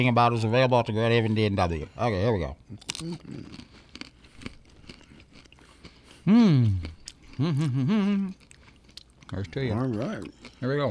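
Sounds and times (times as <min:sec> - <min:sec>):
speech: 0:00.0 - 0:03.8, 0:06.3 - 0:08.4, 0:09.3 - 0:10.8
crunching a chocolate-covered pretzel: 0:02.7 - 0:10.8.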